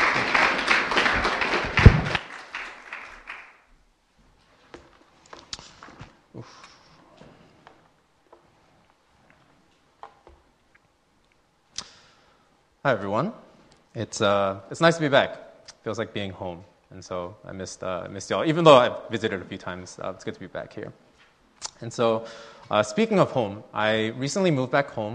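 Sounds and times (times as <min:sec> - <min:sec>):
audience applause: 0:00.0 - 0:03.6
speech: 0:12.8 - 0:13.4, 0:14.0 - 0:21.0, 0:21.8 - 0:25.1.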